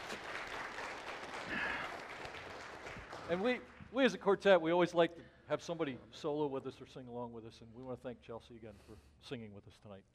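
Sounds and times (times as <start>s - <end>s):
audience applause: 0.0s - 3.8s
speech: 3.3s - 10.1s.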